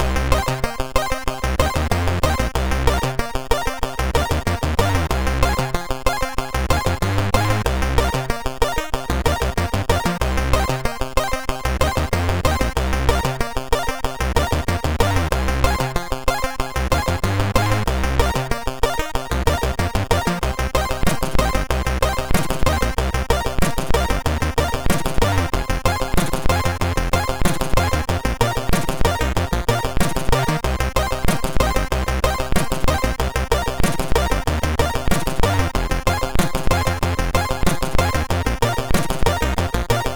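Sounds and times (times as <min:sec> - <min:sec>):
reggae chiptune music on MOS6581R3 sound chip: 0:00.0 - 0:40.1.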